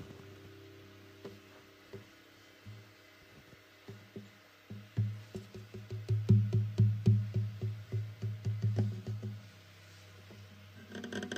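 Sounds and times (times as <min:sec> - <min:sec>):
fast tapping on a guitar: 0:03.8 - 0:09.4.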